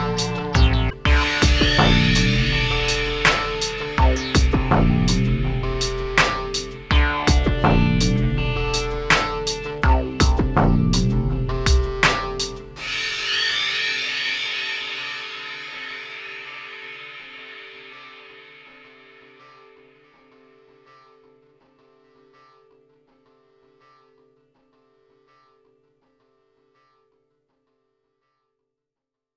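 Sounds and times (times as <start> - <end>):
instrumental music: 0.0 - 21.2.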